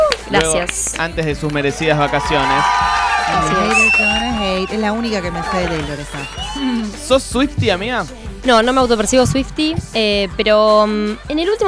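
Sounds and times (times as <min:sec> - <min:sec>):
crowd noise: 0:00.0 - 0:11.6
speech: 0:00.3 - 0:11.6
small group whooping and shouting: 0:01.9 - 0:07.0.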